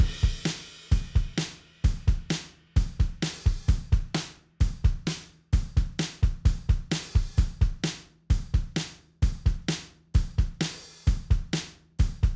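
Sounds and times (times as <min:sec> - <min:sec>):
drums: 0:00.0 - 0:12.3.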